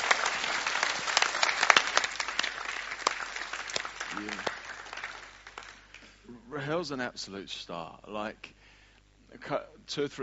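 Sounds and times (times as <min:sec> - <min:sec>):
crowd applauding: 0:00.0 - 0:06.1
speech: 0:04.2 - 0:04.5, 0:06.6 - 0:08.6, 0:09.4 - 0:10.2.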